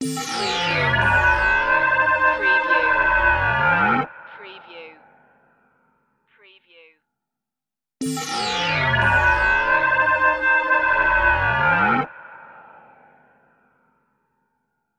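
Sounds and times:
short evil music: 0.0s - 4.4s, 8.0s - 13.7s.

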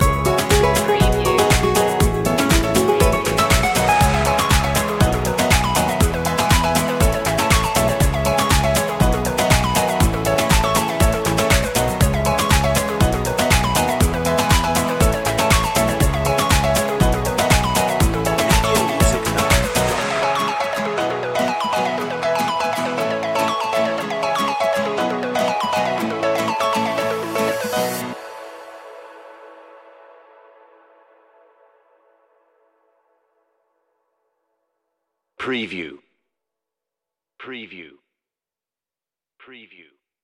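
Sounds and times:
guitar: 0.0s - 30.2s.

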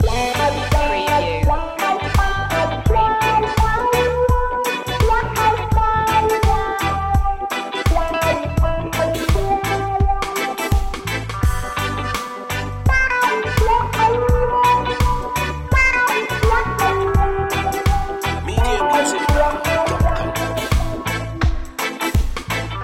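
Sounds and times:
sunny reggae loop: 0.0s - 22.8s.

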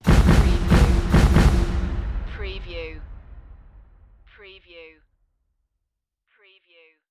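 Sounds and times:
music: 0.0s - 2.9s.

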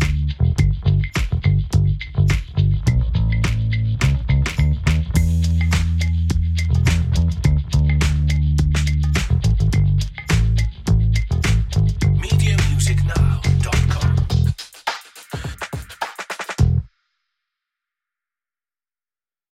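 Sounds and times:
funky groovy bass: 0.0s - 14.6s, 16.6s - 16.9s
funky groovy drums: 0.0s - 16.9s.

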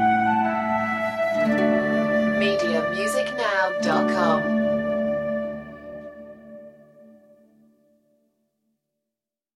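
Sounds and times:
harp: 0.0s - 6.6s
flute: 0.0s - 7.5s.

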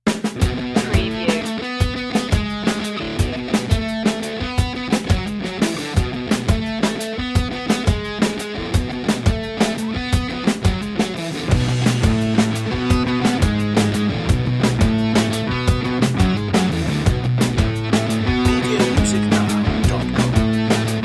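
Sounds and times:
punk pop underscore: 0.1s - 21.0s.

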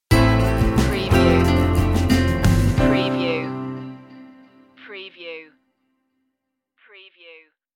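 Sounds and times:
music stinger: 0.1s - 4.7s.

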